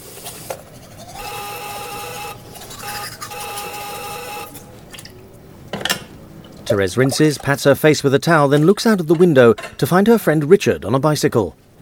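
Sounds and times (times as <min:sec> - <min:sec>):
door buzzer: 0:01.1 - 0:05.0
speech: 0:06.7 - 0:11.7.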